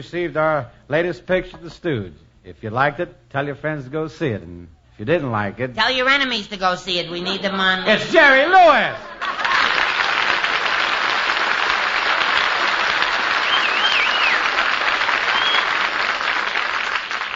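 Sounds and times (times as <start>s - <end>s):
speech: 0.0s - 9.4s
laughter: 7.1s - 10.6s
audience applause: 9.1s - 17.3s.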